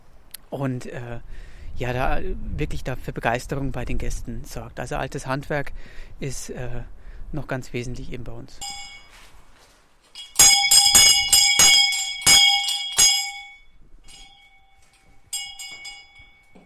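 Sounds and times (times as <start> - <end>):
speech: 0.5 - 8.8
school bell ringing for lesson start: 8.6 - 9.3, 10.1 - 16.6.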